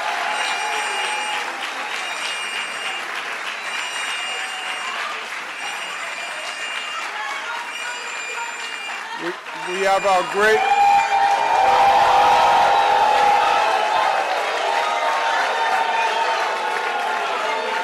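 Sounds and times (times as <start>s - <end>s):
round of applause: 0.0s - 17.8s
speech: 9.2s - 10.8s.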